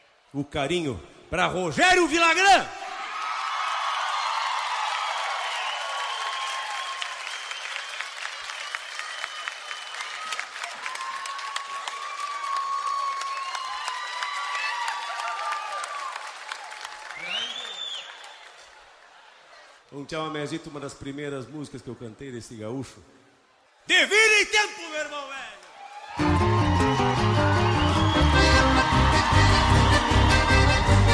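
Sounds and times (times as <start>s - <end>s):
speech: 0.3s - 2.8s, 20.0s - 23.2s
audience applause: 2.9s - 19.9s, 25.6s - 31.1s.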